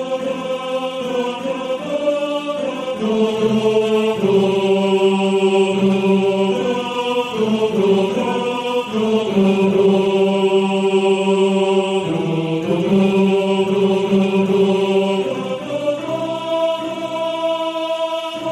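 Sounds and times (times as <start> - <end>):
tenor section of male choir singing: 0.0 - 18.4.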